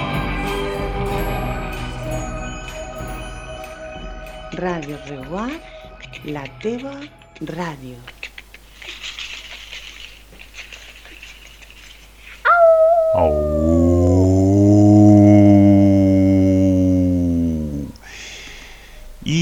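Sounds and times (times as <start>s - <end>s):
speech: 4.6s - 8.1s, 13.2s - 13.7s
wolves howling: 12.4s - 17.9s.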